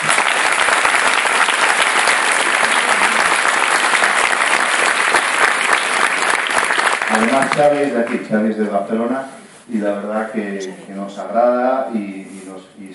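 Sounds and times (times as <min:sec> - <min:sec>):
loud audience applause: 0:00.0 - 0:08.1
speech: 0:07.4 - 0:12.9.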